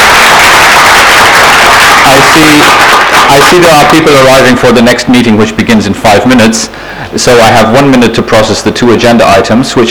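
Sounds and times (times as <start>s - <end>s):
audience applause: 0.0s - 4.1s
speech: 2.1s - 9.8s.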